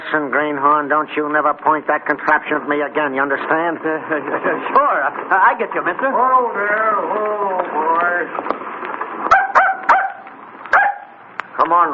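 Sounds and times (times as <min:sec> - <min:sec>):
murmur: 0:00.0 - 0:11.9
speech: 0:00.1 - 0:08.6, 0:11.6 - 0:11.9
dog barking: 0:09.3 - 0:11.2.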